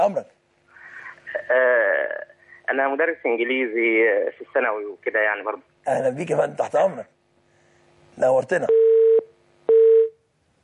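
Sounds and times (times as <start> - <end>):
speech: 0.0 - 0.4, 1.4 - 1.9, 2.7 - 7.2, 8.2 - 8.9
telephone line tone after a call is cut off: 8.7 - 10.2.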